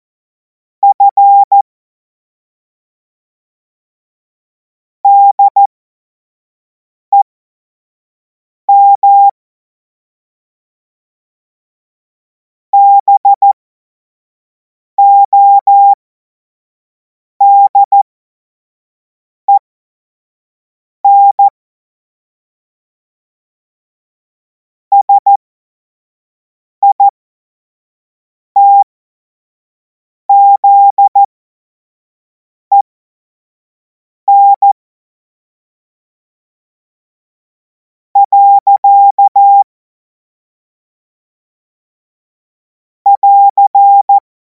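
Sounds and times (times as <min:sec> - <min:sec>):
Morse code course tones: 0:00.8 - 0:01.6, 0:05.1 - 0:05.7, 0:08.8 - 0:09.3, 0:12.8 - 0:13.6, 0:15.0 - 0:16.0, 0:17.4 - 0:18.0, 0:21.0 - 0:21.5, 0:24.9 - 0:25.4, 0:28.6 - 0:28.8, 0:30.3 - 0:31.3, 0:34.3 - 0:34.8, 0:38.2 - 0:39.6, 0:43.1 - 0:44.2.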